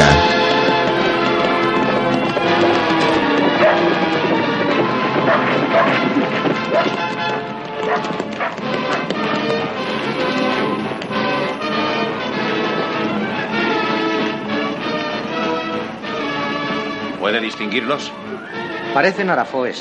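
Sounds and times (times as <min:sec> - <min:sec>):
horses galloping: 0:00.0 - 0:19.8
speech: 0:17.9 - 0:18.2, 0:19.0 - 0:19.8.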